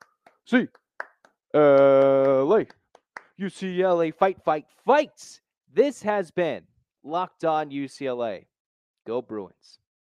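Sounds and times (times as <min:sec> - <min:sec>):
rhythmic eight-count hand claps: 0:00.0 - 0:03.5
speech: 0:00.5 - 0:00.8, 0:01.5 - 0:02.8, 0:03.4 - 0:09.8.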